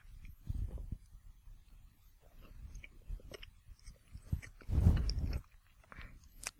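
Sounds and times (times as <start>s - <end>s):
wet chewing of bread with dark caramel-like spread: 2.3s - 6.5s.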